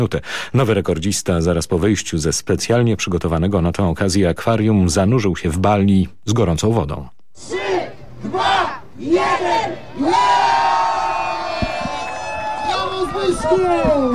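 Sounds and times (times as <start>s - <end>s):
speech: 0.0s - 7.6s, 8.2s - 10.4s, 13.2s - 14.1s
group of fans shouting a countdown: 7.4s - 11.9s
crowd of fans and friends cheering: 7.4s - 14.1s
high whoops: 10.0s - 14.1s.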